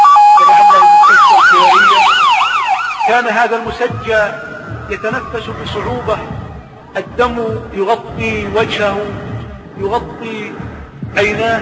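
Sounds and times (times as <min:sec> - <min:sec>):
ambulance siren: 0:00.0 - 0:09.8
speech: 0:03.2 - 0:11.6
low ambulance engine rumble: 0:03.7 - 0:11.6.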